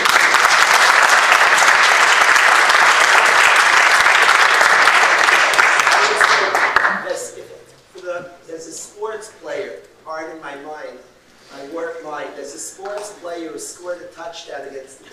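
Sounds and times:
large audience applause: 0.0s - 7.0s.

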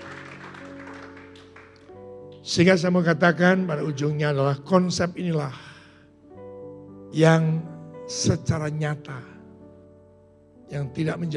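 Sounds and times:
audience applauding: 0.0s - 1.9s
speech: 2.4s - 5.7s, 7.2s - 9.3s, 10.7s - 11.3s.

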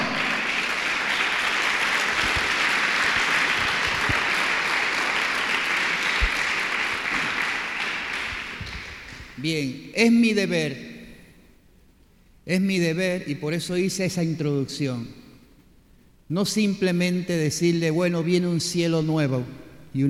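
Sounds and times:
audience applause: 0.0s - 9.4s
speech: 9.4s - 10.9s, 12.5s - 15.2s, 16.3s - 20.0s.

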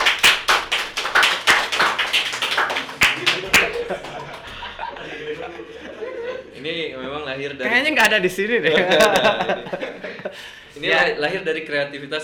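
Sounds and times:
audience clapping hands: 0.0s - 4.9s
laughter: 2.5s - 6.7s, 8.4s - 10.6s
speech: 7.4s - 10.0s, 10.8s - 12.2s.

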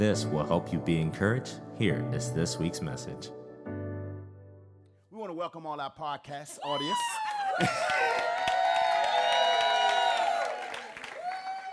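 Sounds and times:
speech: 0.0s - 3.4s, 5.4s - 7.0s, 7.6s - 8.2s
whoops and shouting voices: 6.6s - 11.7s
crowd clapping: 6.8s - 11.7s.

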